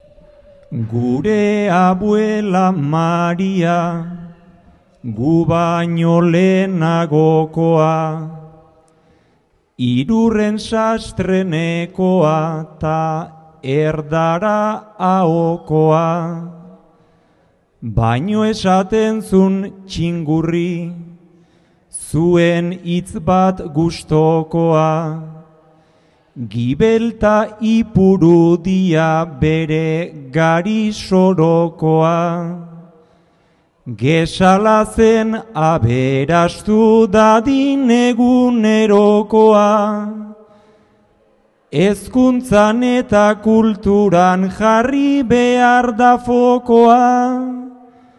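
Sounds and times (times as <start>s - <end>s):
person singing a bertso greeting verse: 0.0s - 9.0s, 9.8s - 17.0s, 17.8s - 33.0s, 33.8s - 48.1s.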